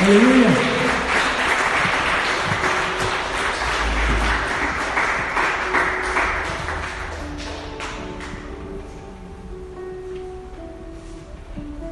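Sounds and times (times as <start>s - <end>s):
audience applauding loudly: 0.0s - 8.5s
speech: 0.1s - 0.4s.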